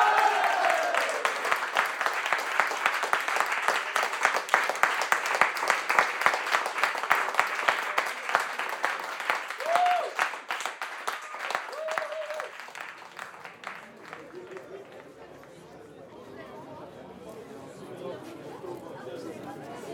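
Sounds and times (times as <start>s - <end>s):
whoops and cheers: 0.0s - 1.3s, 9.6s - 10.3s, 11.6s - 12.6s
group applause: 0.0s - 15.6s.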